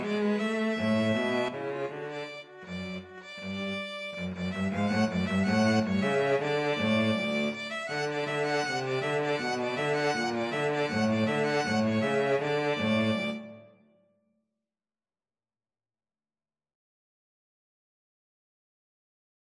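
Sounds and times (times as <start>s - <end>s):
cello in a violin cello duet: 0.0s - 13.7s
violin in a violin cello duet: 0.0s - 13.8s.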